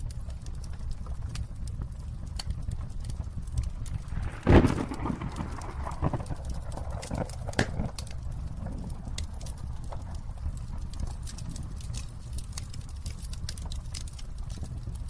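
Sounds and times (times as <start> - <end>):
fire crackling and popping: 0.0 - 15.0
low rumble: 2.0 - 12.7.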